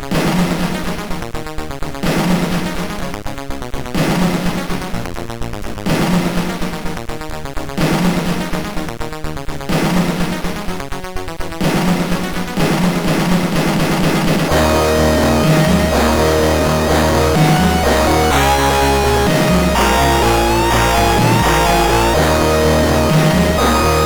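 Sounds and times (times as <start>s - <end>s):
intro music on MOS 6581R3 SID chip: 0.1s - 1.3s, 2.1s - 3.1s, 3.9s - 5.1s, 5.9s - 7.0s, 7.8s - 8.9s, 9.7s - 10.7s, 11.6s - 24.0s.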